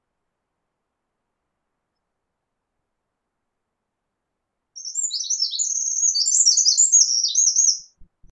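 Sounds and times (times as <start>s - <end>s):
Eurasian wren singing: 4.8s - 8.0s
faint low thumps: 8.0s - 8.2s.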